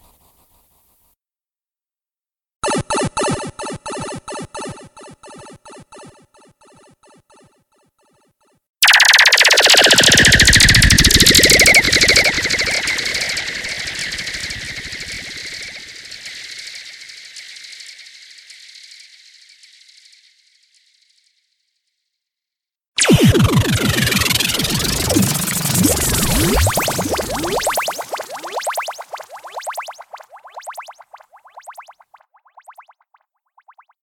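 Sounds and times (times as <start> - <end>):
sound effects: 2.6 - 7.6, 8.8 - 16.2, 23.0 - 30.4.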